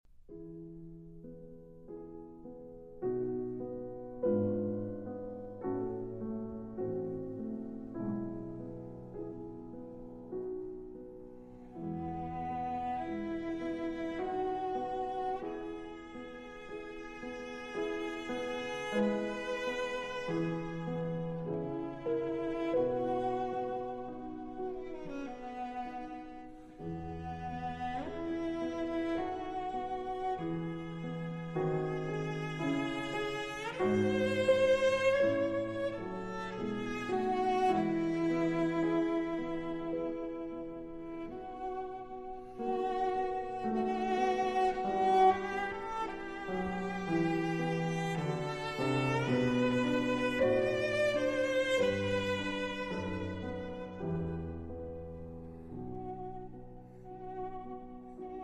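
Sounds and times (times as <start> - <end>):
slow classical sonata adagio in A minor: 0.0 - 58.4.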